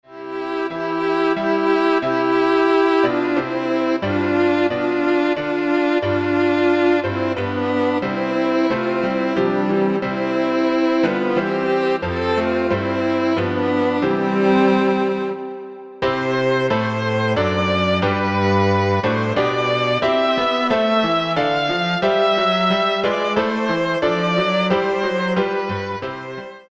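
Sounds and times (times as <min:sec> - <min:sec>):
piano trio: 0:00.2 - 0:26.7.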